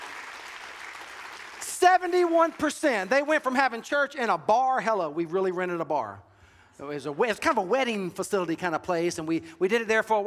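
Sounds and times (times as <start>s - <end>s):
crowd cheering: 0.0s - 2.6s
crowd applauding: 0.0s - 3.1s
speech: 1.8s - 10.2s.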